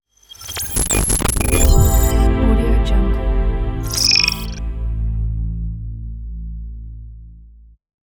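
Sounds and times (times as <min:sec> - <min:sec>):
glitchy audio logo: 0:00.2 - 0:05.1.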